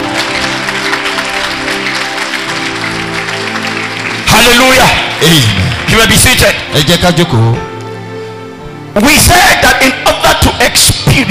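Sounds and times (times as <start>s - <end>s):
audience clapping: 0.0s - 6.9s
speech: 4.5s - 7.7s, 9.0s - 11.2s.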